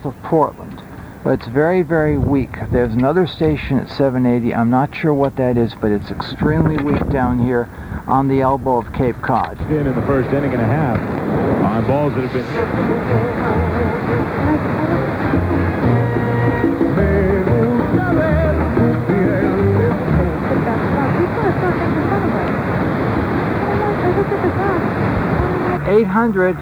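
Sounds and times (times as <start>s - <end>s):
speech: 0.0s - 0.6s, 1.2s - 15.1s, 25.9s - 26.6s
plane flying overhead on its way to Chatham Airport: 9.9s - 26.6s.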